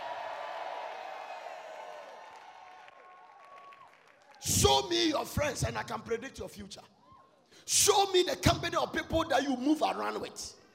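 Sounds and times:
audience shouting and clapping: 0:00.0 - 0:04.9
speech: 0:04.4 - 0:07.0, 0:07.7 - 0:10.6.

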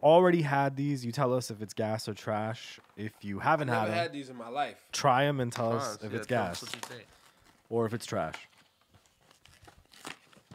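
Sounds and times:
speech: 0:00.0 - 0:08.5
crinkly plastic cereal packaging rustling and tearing open: 0:06.3 - 0:10.5.

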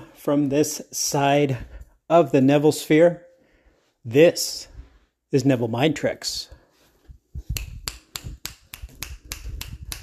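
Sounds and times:
speech: 0:00.2 - 0:03.2, 0:04.0 - 0:04.7, 0:05.3 - 0:06.6
finger snapping: 0:07.5 - 0:10.0.

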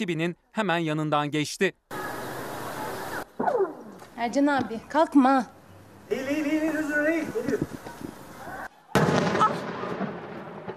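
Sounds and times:
speech: 0:00.0 - 0:01.9, 0:03.4 - 0:07.8
explosion from an airstrike: 0:09.0 - 0:10.7.

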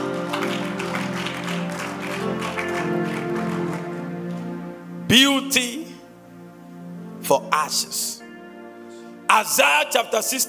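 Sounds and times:
audience clapping: 0:00.0 - 0:04.6
speech: 0:05.1 - 0:05.8, 0:07.3 - 0:08.2, 0:09.4 - 0:10.4.

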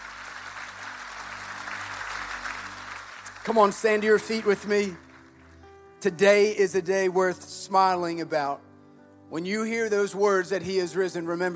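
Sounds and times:
audience applauding: 0:00.0 - 0:05.7
speech: 0:03.4 - 0:05.0, 0:06.0 - 0:08.6, 0:09.3 - 0:11.5.

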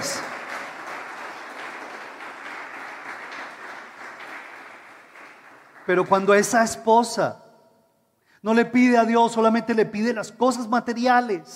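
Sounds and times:
audience applause: 0:00.0 - 0:06.3
speech: 0:05.9 - 0:07.4, 0:08.4 - 0:11.5.

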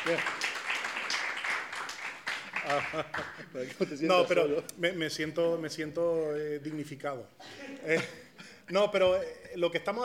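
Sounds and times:
speech: 0:00.0 - 0:00.4, 0:02.6 - 0:10.0
applause: 0:00.0 - 0:03.5.

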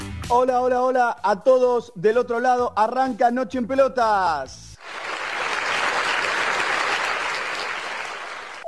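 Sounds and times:
speech: 0:00.3 - 0:04.6
warm applause: 0:04.8 - 0:08.6.

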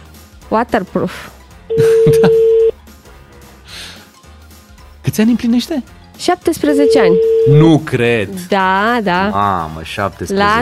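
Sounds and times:
speech: 0:00.5 - 0:02.5, 0:05.2 - 0:10.6
laughter: 0:01.7 - 0:02.6
telephone ringing: 0:01.7 - 0:02.7, 0:06.7 - 0:07.9.

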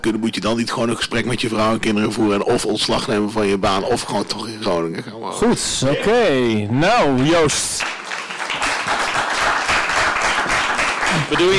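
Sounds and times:
speech: 0:00.0 - 0:08.0, 0:11.2 - 0:11.5
audience applause: 0:07.4 - 0:11.5.

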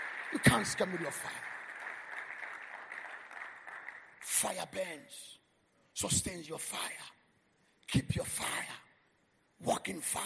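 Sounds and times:
crowd clapping: 0:00.0 - 0:05.0
speech: 0:00.3 - 0:01.5, 0:04.4 - 0:05.4, 0:06.0 - 0:07.2, 0:07.9 - 0:08.8, 0:09.6 - 0:10.2.

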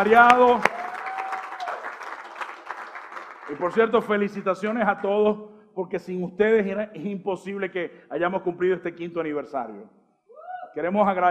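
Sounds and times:
speech: 0:00.0 - 0:00.7, 0:03.5 - 0:10.0, 0:10.8 - 0:11.2
audience applause: 0:00.0 - 0:04.3.

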